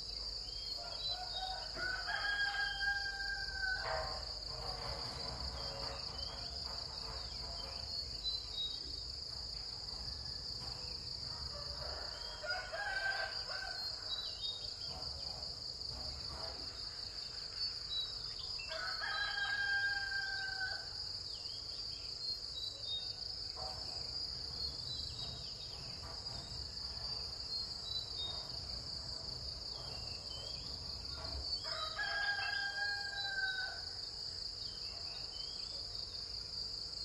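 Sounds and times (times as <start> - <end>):
morning ambience in Vietnam: 0.0 - 37.0.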